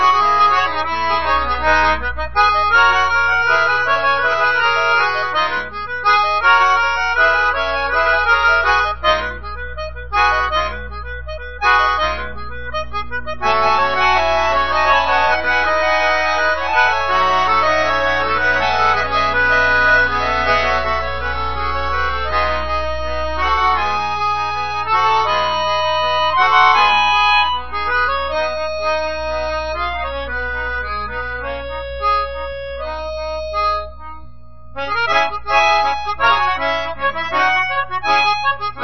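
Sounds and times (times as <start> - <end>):
melodica: 0.0 - 38.8.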